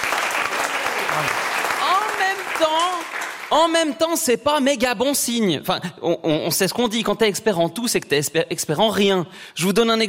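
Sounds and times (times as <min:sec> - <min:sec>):
audience applause: 0:00.0 - 0:03.8
speech: 0:02.3 - 0:10.0.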